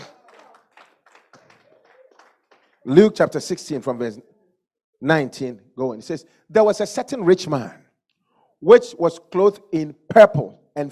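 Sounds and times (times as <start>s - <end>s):
congregation clapping during a church sermon: 0.0s - 3.9s
speech: 2.8s - 4.3s, 5.0s - 7.8s, 8.6s - 10.8s.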